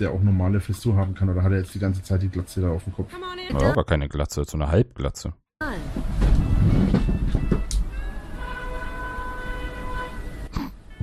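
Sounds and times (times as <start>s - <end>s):
speech: 0.0s - 5.4s
horn honking: 6.7s - 11.0s.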